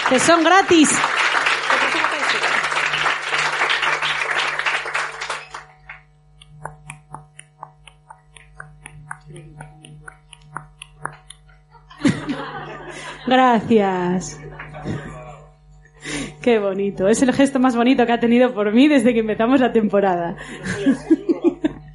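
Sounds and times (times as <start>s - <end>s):
applause: 0.0s - 6.1s, 14.5s - 14.9s
speech: 0.1s - 2.5s, 13.3s - 15.0s, 16.4s - 21.3s
laughter: 11.4s - 15.5s, 20.4s - 21.9s.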